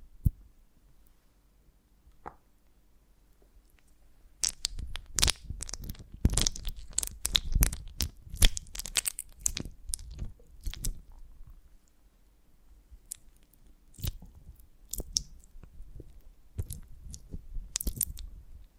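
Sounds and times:
honeycomb on a branch being handled and bitten: 0:04.4 - 0:11.1, 0:13.0 - 0:15.5, 0:16.6 - 0:18.3.

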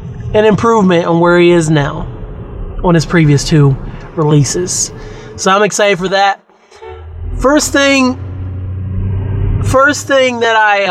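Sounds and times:
speech: 0:00.3 - 0:02.0, 0:02.8 - 0:06.4, 0:07.4 - 0:08.2, 0:09.6 - 0:10.8
car horn honking: 0:06.7 - 0:08.0.

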